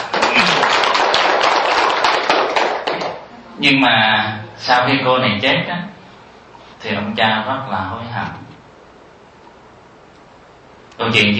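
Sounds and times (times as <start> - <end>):
audience applause: 0.0 - 3.3
speech: 3.6 - 6.0, 6.8 - 8.4, 11.0 - 11.3.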